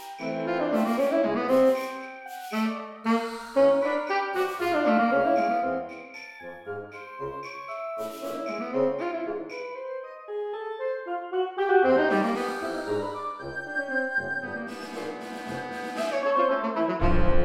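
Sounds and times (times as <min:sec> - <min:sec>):
saxophone band playing: 0:00.0 - 0:05.9, 0:08.0 - 0:09.6, 0:11.1 - 0:17.3.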